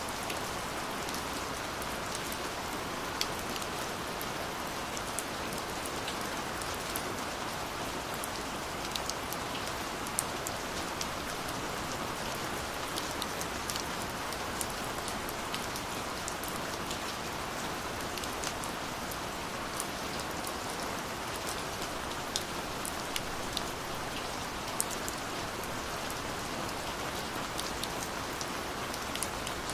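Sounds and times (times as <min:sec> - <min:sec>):
rain: 0:00.0 - 0:29.7.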